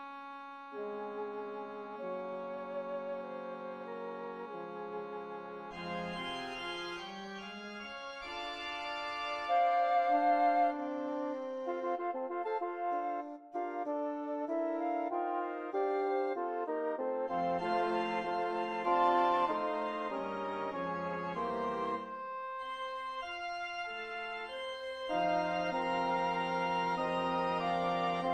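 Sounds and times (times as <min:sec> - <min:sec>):
five wind instruments: 0:00.0 - 0:28.3
organ: 0:01.0 - 0:11.6, 0:17.3 - 0:22.1, 0:22.8 - 0:28.3.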